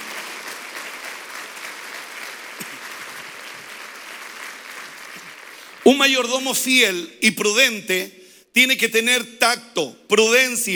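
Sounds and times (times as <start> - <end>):
audience applause: 0.0 - 5.9
speech: 5.8 - 10.7.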